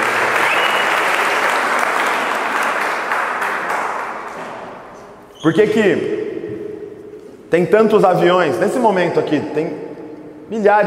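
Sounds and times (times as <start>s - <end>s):
crowd applauding the actors: 0.0s - 4.4s
speech: 5.4s - 6.2s, 7.5s - 9.8s, 10.5s - 10.8s.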